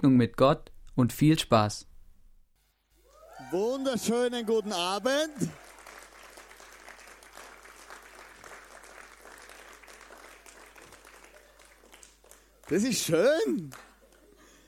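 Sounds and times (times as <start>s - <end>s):
speech: 0.0s - 1.9s, 3.5s - 5.6s, 12.7s - 13.9s
audience applause: 3.1s - 14.6s.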